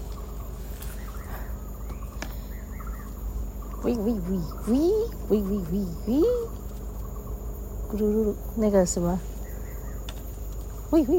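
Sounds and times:
many birds calling outdoors: 0:00.0 - 0:11.1
speech: 0:03.8 - 0:06.6, 0:07.9 - 0:09.3, 0:10.9 - 0:11.1.

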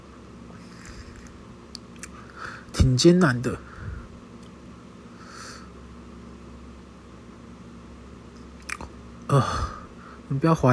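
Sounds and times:
steady low hum: 0:00.0 - 0:10.7
speech: 0:02.8 - 0:03.7, 0:09.3 - 0:09.6, 0:10.3 - 0:10.7
person swallowing saliva: 0:08.6 - 0:09.0.

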